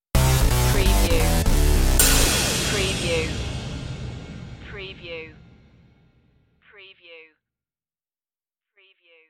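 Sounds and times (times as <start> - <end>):
music stinger: 0.2 - 5.9.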